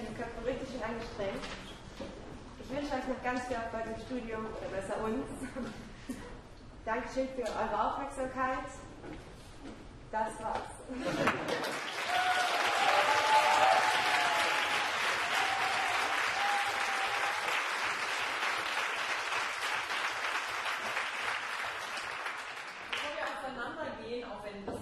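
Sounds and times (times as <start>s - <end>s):
speech: 0.2s - 1.7s, 2.7s - 11.8s
audience applause: 11.2s - 23.2s.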